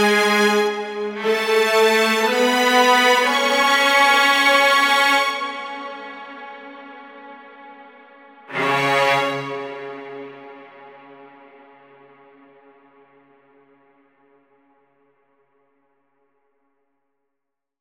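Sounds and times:
string section melody in C sharp minor: 0:00.0 - 0:07.0, 0:08.5 - 0:11.4.

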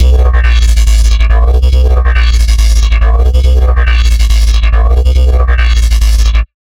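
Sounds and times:
dubstep bassline in C3 at 140 bpm: 0:00.0 - 0:06.5.

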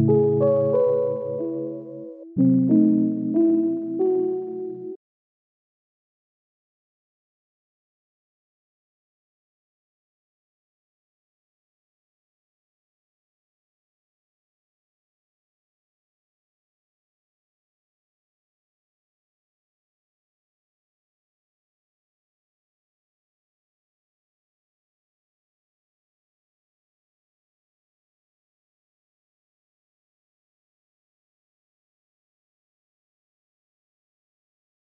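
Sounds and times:
C# minor piano loop: 0:00.0 - 0:05.0.

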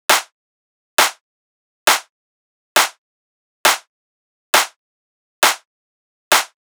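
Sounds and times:
techno clap loop at 135 BPM: 0:00.1 - 0:00.3, 0:01.0 - 0:01.2, 0:01.9 - 0:02.1, 0:02.8 - 0:03.0, 0:03.7 - 0:03.9, 0:04.6 - 0:04.8, 0:05.4 - 0:05.6, 0:06.3 - 0:06.6.

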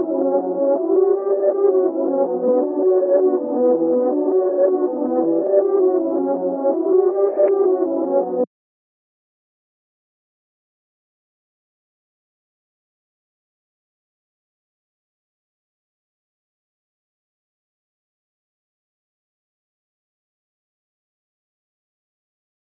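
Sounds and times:
B minor reverse pad melody: 0:00.0 - 0:08.5.

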